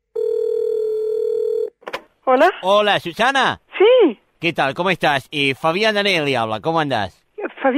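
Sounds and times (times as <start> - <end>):
steady buzzy telephone tone: 0.2 - 1.7
speech: 2.3 - 7.7.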